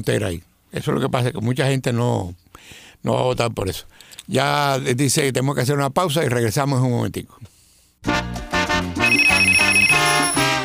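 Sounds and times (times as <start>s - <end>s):
speech: 0.0s - 8.4s
bright repeating musical tones: 9.0s - 10.6s
telephone-style ringtone: 9.0s - 10.6s.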